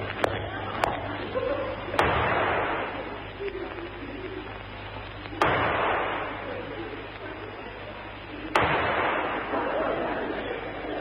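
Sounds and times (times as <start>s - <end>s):
people talking: 0.0s - 10.9s
laughter: 0.2s - 10.9s
pistol shots in a duel: 5.4s - 6.3s, 8.6s - 9.6s.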